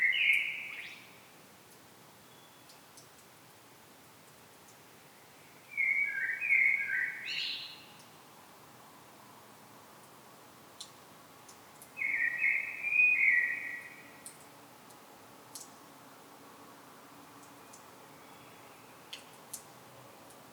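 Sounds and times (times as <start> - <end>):
common blackbird singing: 0.0 - 1.0, 5.7 - 7.9, 12.0 - 14.2
faint steady hiss: 0.0 - 20.5.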